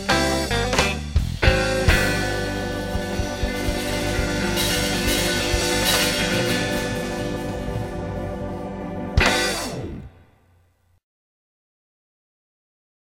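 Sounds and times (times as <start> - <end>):
down home blues music: 0.0 - 10.3.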